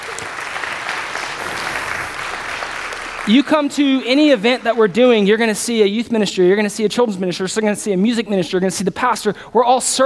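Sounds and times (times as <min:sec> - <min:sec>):
audience applause: 0:00.0 - 0:05.3
speech: 0:03.3 - 0:10.0.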